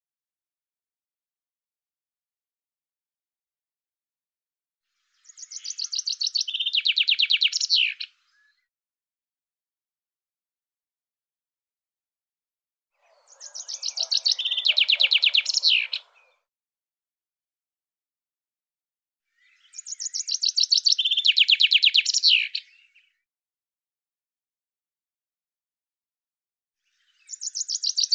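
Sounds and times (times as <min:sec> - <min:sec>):
bird song trill: 0:05.0 - 0:08.7, 0:13.0 - 0:16.5, 0:19.3 - 0:23.2, 0:26.8 - 0:28.1.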